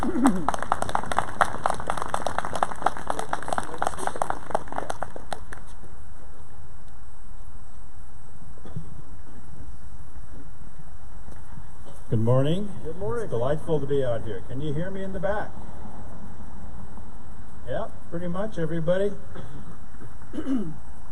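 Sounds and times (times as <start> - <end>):
audience applause welcoming a guest speaker to a human genetics lecture: 0.0 - 5.7
speech: 12.3 - 15.6, 17.7 - 19.6, 20.4 - 20.8.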